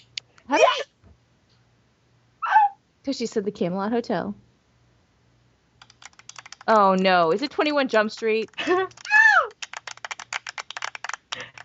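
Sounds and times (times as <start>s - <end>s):
speech: 3.1s - 4.4s, 6.7s - 9.0s
clap sound effect: 8.2s - 11.6s.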